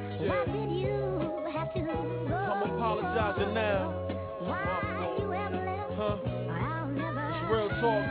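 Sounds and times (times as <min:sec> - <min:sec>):
hip hop music: 0:00.2 - 0:01.0, 0:01.5 - 0:08.0.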